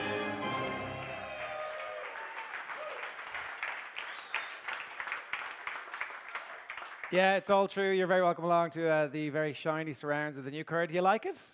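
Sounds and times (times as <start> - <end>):
audience applause for a presenter on a sports show: 0.0 - 7.2
speech: 7.1 - 11.5.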